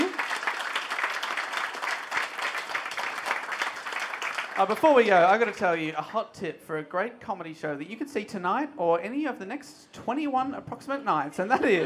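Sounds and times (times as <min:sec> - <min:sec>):
audience applause: 0:00.0 - 0:05.6
speech: 0:04.6 - 0:11.8
laughter: 0:11.4 - 0:11.8.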